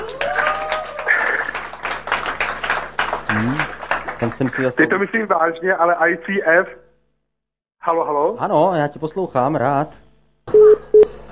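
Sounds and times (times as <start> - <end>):
whoops and cheering voices: 0.0 - 1.5
audience applauding: 0.0 - 4.8
speech: 4.2 - 6.8, 7.9 - 10.0.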